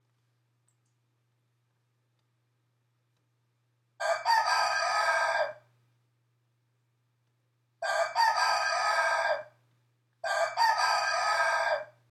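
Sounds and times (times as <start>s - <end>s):
rooster crowing: 4.0s - 5.6s, 7.8s - 9.5s, 10.2s - 12.0s.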